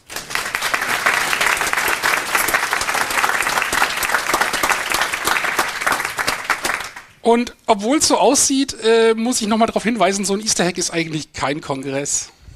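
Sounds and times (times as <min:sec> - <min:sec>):
audience applause: 0:00.0 - 0:07.2
speech: 0:07.2 - 0:12.4.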